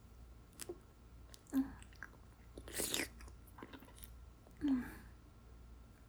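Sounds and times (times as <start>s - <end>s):
wet mouth sounds ASMR: 0.5s - 5.1s.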